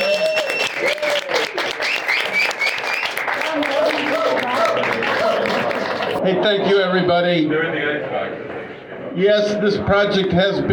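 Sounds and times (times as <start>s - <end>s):
audience applause: 0.0s - 6.2s
speech: 6.3s - 8.5s, 9.2s - 10.7s.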